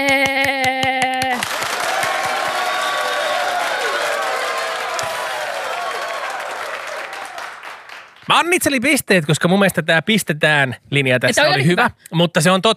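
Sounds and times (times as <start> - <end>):
group applause: 0.0 - 8.6
speech: 8.3 - 12.7.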